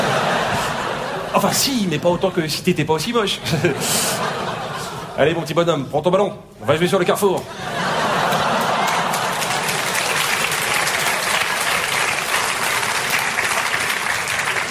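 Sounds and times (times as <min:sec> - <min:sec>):
laughter: 0:00.0 - 0:02.0, 0:03.2 - 0:05.5, 0:07.4 - 0:14.6
speech: 0:01.3 - 0:04.5, 0:05.2 - 0:07.8
audience applause: 0:07.8 - 0:14.6.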